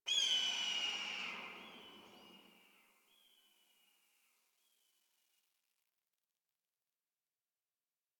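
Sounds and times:
exterior distant calls: 0.1 - 3.6.

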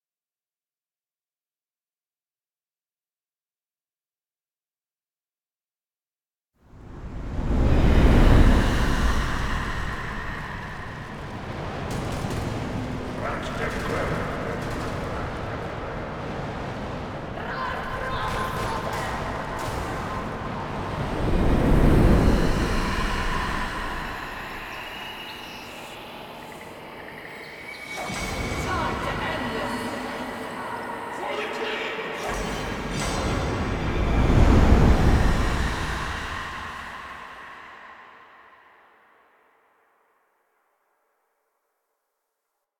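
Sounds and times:
whooshes: 6.8 - 31.3, 32.0 - 38.9.

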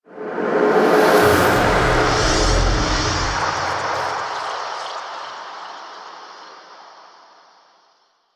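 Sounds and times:
musical stinger: 1.2 - 4.8.

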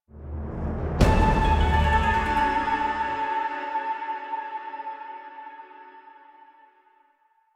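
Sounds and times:
card appear music cue: 1.0 - 5.5.

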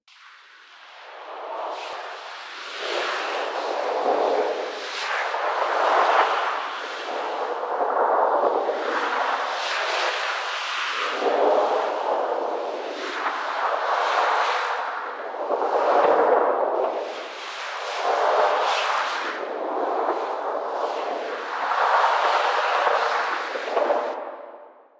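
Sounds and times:
wind movement: 0.2 - 24.9.

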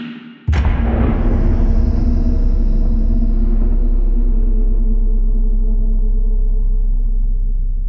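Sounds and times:
boom: 0.5 - 7.7.

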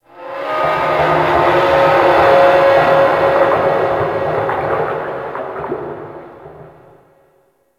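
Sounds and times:
creaking under ocean pressure: 0.9 - 7.1.

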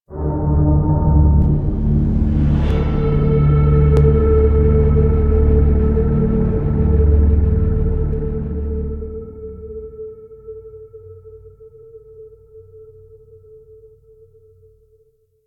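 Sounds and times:
arena reveal music stinger: 0.1 - 9.6.

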